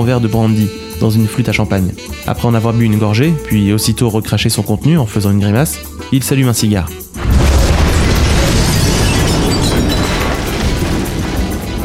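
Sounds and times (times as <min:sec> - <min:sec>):
speech: 0:00.0 - 0:07.3
crackling debris: 0:07.1 - 0:11.8
house explosion: 0:07.2 - 0:11.8.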